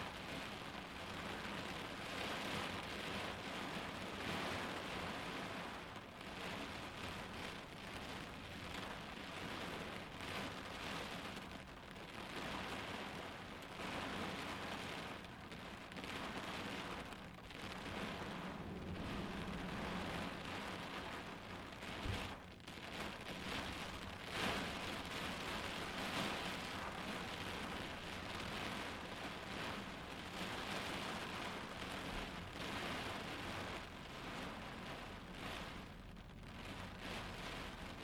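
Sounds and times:
storm rain drumming on a car heard from inside: 0.0s - 38.0s
low rumble: 17.0s - 22.5s.

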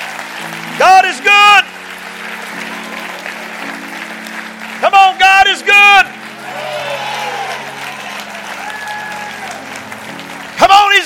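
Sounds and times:
audience clapping hands: 0.0s - 11.0s.

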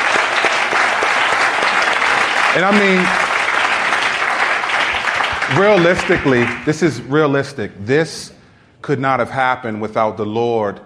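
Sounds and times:
audience applause: 0.0s - 6.8s
speech: 2.6s - 3.2s, 5.5s - 10.8s.

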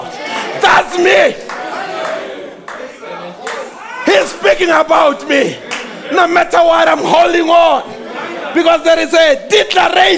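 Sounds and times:
speech: 1.0s - 1.5s, 4.6s - 10.1s
audience clapping: 1.0s - 6.1s.

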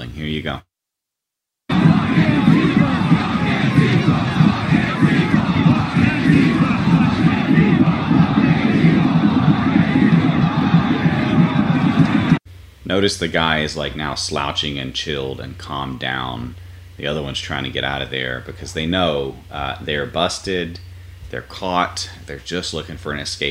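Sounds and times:
speech: 0.0s - 0.7s, 12.9s - 23.4s
large crowd chanting and shouting together: 1.7s - 12.4s.

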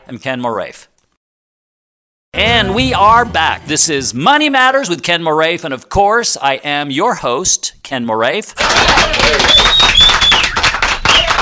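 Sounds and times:
speech: 0.1s - 0.9s, 2.3s - 10.2s
applause sound effect: 8.6s - 11.4s.

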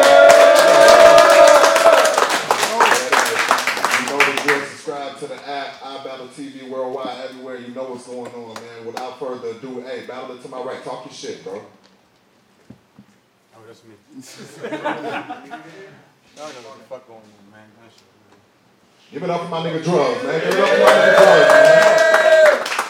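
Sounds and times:
loud crowd applause: 0.0s - 4.7s, 20.3s - 22.8s
speech: 9.1s - 11.9s, 13.6s - 18.2s, 19.1s - 22.7s
laughter: 14.2s - 16.0s.

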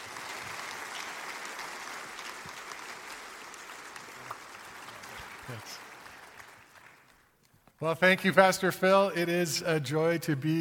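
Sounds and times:
church congregation applauding a guest pastor at a morning service: 0.0s - 7.4s
speech: 5.5s - 5.9s, 7.8s - 10.5s.

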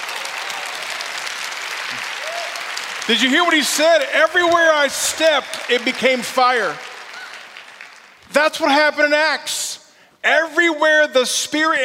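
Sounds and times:
church audience applauding: 0.0s - 8.8s
speech: 3.1s - 6.9s, 8.4s - 9.6s, 10.2s - 11.8s.

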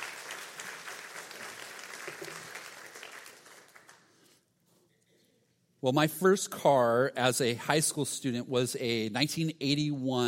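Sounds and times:
people clapping: 0.0s - 4.4s
speech: 5.8s - 10.2s.

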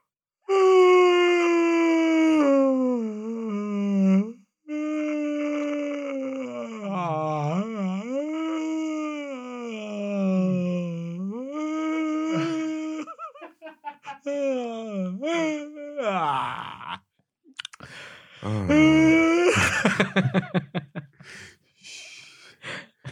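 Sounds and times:
exaggeratedly long yawn: 0.5s - 13.2s, 14.2s - 17.0s, 17.6s - 19.6s
laughter: 12.4s - 14.4s, 19.5s - 21.2s, 22.8s - 23.1s.

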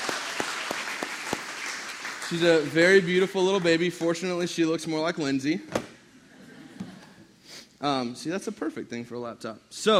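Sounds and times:
audience applause: 0.0s - 4.2s
speech: 2.3s - 5.8s, 7.8s - 9.9s.

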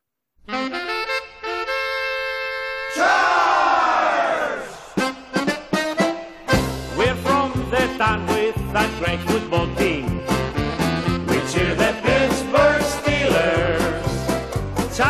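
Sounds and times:
recorded polka song playing: 0.4s - 15.0s.

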